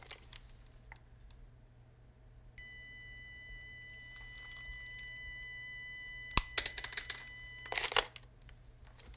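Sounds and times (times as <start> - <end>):
hospital sound effects: 2.6 - 8.1.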